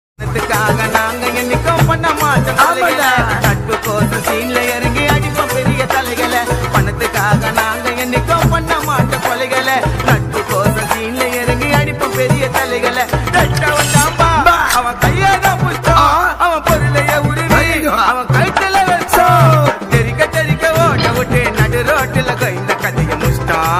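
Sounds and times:
rowdy gana song: 0.2 - 23.7.

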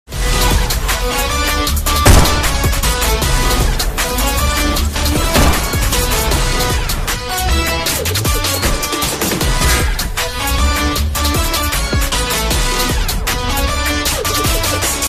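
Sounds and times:
trailer background music: 0.1 - 15.0.

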